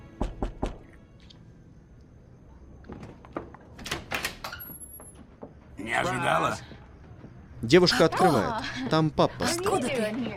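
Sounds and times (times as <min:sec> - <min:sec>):
knocking on a door in a film scene: 0:00.2 - 0:00.8
speech: 0:05.8 - 0:06.7, 0:07.6 - 0:10.3.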